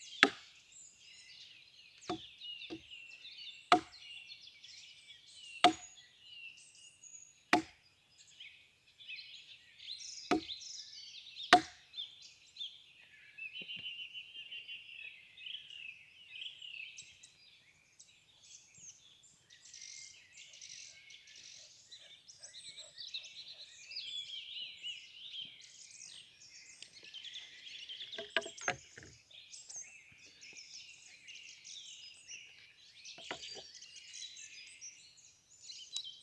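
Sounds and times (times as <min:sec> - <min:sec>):
birds in a forest: 0:00.0 - 0:36.2
wood knocking: 0:03.7 - 0:03.9, 0:05.6 - 0:05.8, 0:28.2 - 0:29.1.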